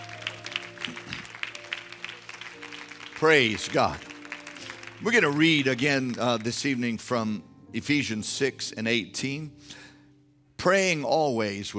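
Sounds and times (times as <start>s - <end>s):
audience clapping hands: 0.0s - 7.0s
speech: 3.2s - 4.1s, 5.0s - 9.8s, 10.6s - 11.7s.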